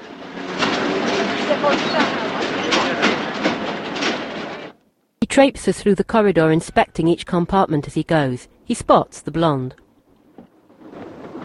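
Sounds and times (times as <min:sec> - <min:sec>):
clickety-clack of train wheels: 0:00.0 - 0:04.8, 0:10.2 - 0:11.4
railway carriages rumbling at a station: 0:00.0 - 0:09.0, 0:10.1 - 0:11.4
speech: 0:01.6 - 0:02.2, 0:05.3 - 0:09.8.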